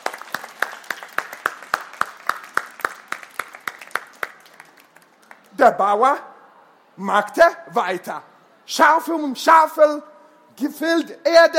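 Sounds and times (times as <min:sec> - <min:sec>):
audience applause: 0:00.0 - 0:05.5
speech: 0:05.6 - 0:06.3, 0:07.0 - 0:11.5.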